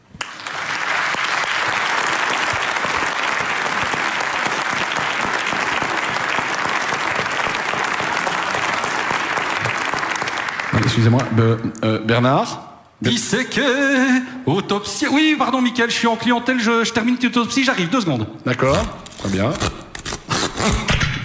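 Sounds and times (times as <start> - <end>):
audience applause: 0.0 - 11.4
speech: 11.0 - 19.8, 20.6 - 20.9.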